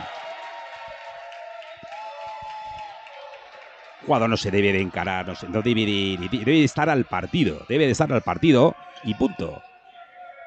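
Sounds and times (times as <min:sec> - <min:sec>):
football stadium crowd jeering player Keita: 0:00.0 - 0:10.4
speech: 0:04.0 - 0:09.7.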